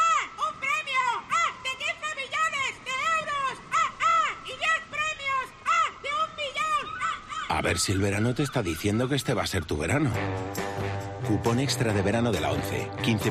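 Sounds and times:
seagulls calling: 0.0s - 10.4s
speech: 7.6s - 10.6s, 11.3s - 13.2s.

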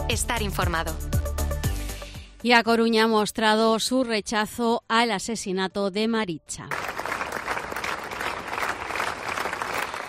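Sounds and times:
speech: 0.1s - 1.1s, 2.4s - 6.8s
crowd applause after a minute of silence: 6.7s - 10.0s.

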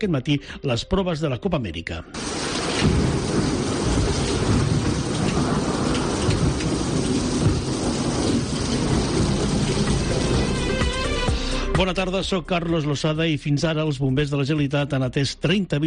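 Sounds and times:
speech: 0.0s - 3.5s, 11.8s - 15.8s
heavy rain: 2.2s - 11.7s
thunder rumbling: 2.2s - 12.1s.

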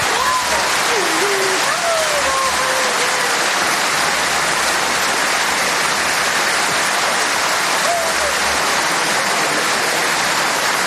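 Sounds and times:
thunderous crowd applause and ovation in arena: 0.0s - 10.8s.

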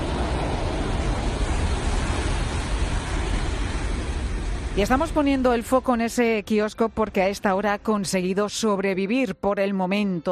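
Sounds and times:
waves reaching the shore of Playa de los Guirres: 0.0s - 6.1s
speech: 4.8s - 10.3s.

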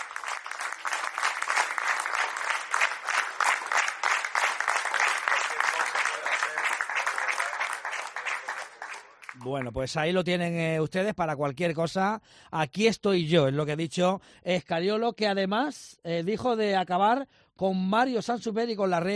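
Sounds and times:
team applauding their departing coach: 0.0s - 9.9s
speech: 9.4s - 19.1s.

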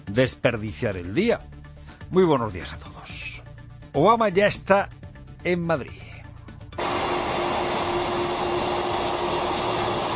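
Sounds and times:
speech: 0.1s - 3.0s, 3.9s - 6.0s
Air Force One presidential jet engine roar taxiing on runway at Torrejón de Ardoz: 6.8s - 10.1s.

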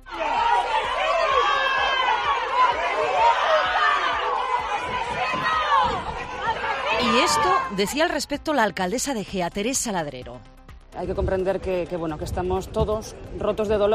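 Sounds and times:
crowd of neighbours shouting murderer: 0.0s - 7.8s
speech: 7.3s - 13.9s.

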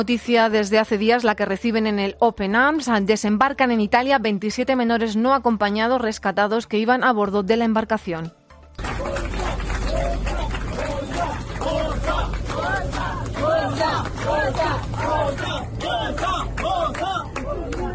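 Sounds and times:
speech: 0.0s - 8.9s
clapping: 8.2s - 17.9s
crowd shouting and chanting in celebration: 8.8s - 17.9s.

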